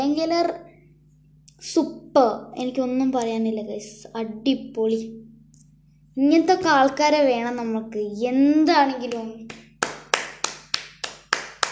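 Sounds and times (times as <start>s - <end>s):
speech: 0.0s - 0.7s, 1.6s - 5.2s, 6.2s - 9.6s
hands clapping: 9.0s - 11.6s.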